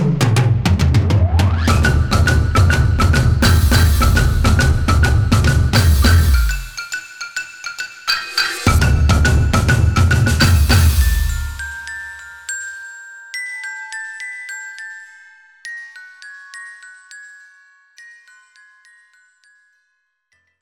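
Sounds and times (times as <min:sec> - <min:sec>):
drums: 0:00.0 - 0:07.1, 0:07.8 - 0:12.1.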